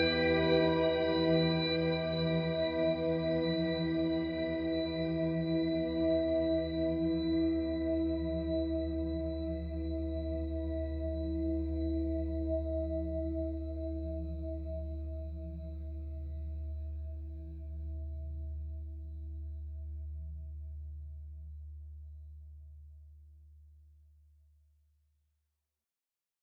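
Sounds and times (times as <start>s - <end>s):
ambient music piece: 0.0s - 20.4s.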